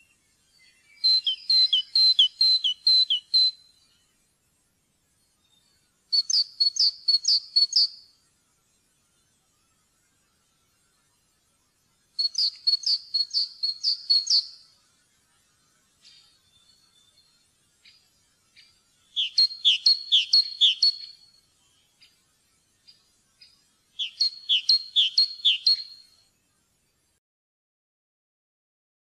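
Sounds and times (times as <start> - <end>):
great tit calling: 1.0 - 3.6, 6.2 - 8.0, 12.2 - 14.6, 19.2 - 21.2, 24.0 - 26.0.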